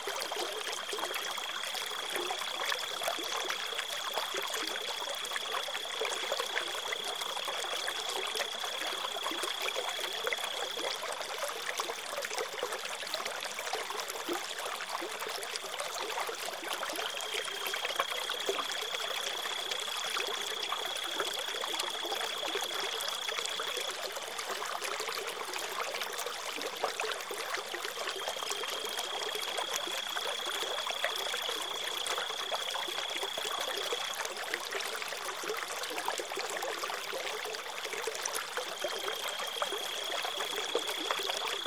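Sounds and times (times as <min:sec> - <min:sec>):
wilderness river water flowing: 0:00.0 - 0:41.6
crickets chirping: 0:00.1 - 0:11.7, 0:17.0 - 0:24.2, 0:27.8 - 0:36.0, 0:38.6 - 0:41.6.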